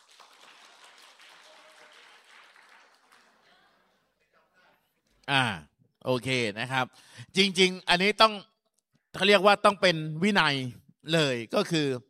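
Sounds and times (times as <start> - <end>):
audience clapping: 0.0 - 3.8
speech: 5.3 - 8.5, 9.2 - 12.0.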